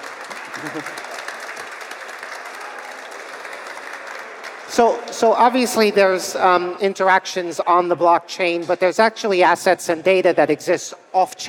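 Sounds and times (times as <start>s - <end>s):
round of applause: 0.0s - 5.2s
speech: 0.6s - 1.1s, 4.8s - 11.4s.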